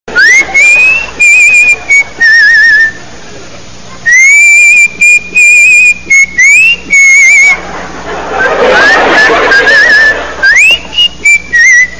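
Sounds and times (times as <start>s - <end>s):
whistling: 0.1s - 3.0s, 4.0s - 7.6s, 8.4s - 11.9s
laughter: 0.2s - 2.5s, 7.0s - 11.4s.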